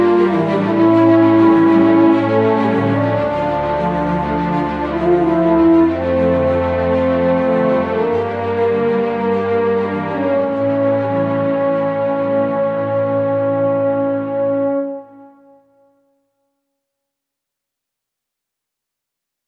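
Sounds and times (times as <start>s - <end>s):
soundtrack music: 0.0s - 14.8s.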